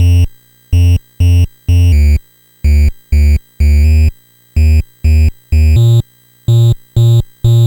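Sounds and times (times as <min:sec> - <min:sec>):
NES chiptune bass: 0:01.8 - 0:06.0, 0:06.6 - 0:07.6.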